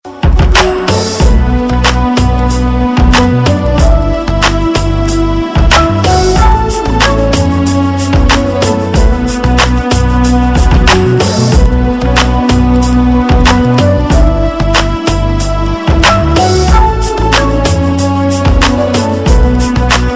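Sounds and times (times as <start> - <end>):
rock music: 0.1 - 20.1.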